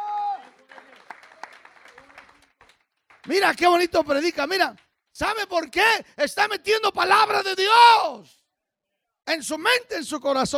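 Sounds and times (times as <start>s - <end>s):
audience applause: 0.0s - 3.9s
speech: 3.2s - 8.4s, 9.3s - 10.5s.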